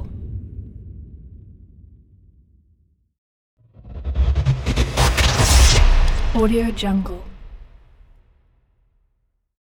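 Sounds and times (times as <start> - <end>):
trailer power sound effect: 3.7 - 7.8.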